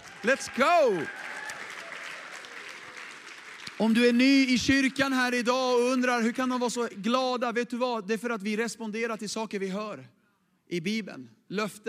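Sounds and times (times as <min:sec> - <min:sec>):
audience applauding: 0:00.0 - 0:05.2
speech: 0:00.2 - 0:01.3, 0:03.8 - 0:11.8.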